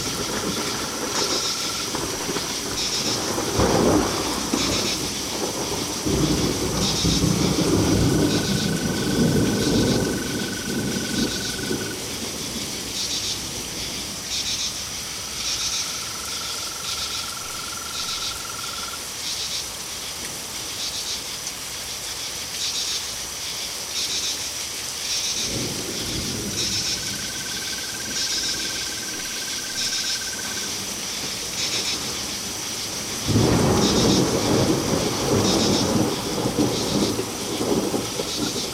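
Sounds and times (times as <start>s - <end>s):
storm: 0.0s - 19.0s, 25.3s - 38.7s
crickets chirping: 0.0s - 38.7s.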